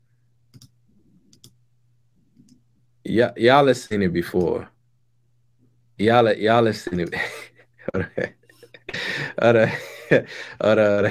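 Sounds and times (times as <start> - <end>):
low steady hum: 0.0 - 11.0
computer mouse clicks opening a video: 0.5 - 1.6
speech: 3.1 - 4.7, 6.0 - 8.4, 9.4 - 11.0.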